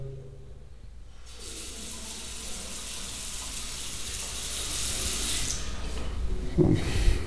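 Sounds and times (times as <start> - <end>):
tap water running in a bathroom: 1.1 - 6.4.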